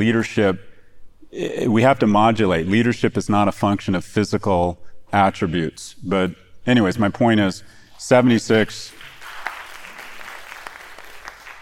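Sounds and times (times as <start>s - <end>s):
speech: 0.0s - 0.7s, 1.3s - 9.0s
audience applause: 8.9s - 11.5s.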